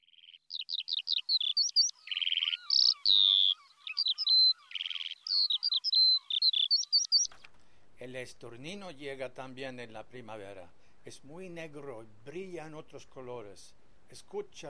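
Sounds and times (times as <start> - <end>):
Eurasian skylark singing: 0.0 - 7.3
speech: 8.0 - 14.6.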